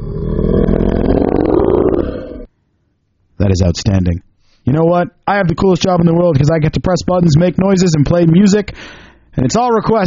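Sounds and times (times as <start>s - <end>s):
monster growl sound effect: 0.0s - 2.5s
speech: 3.5s - 10.0s.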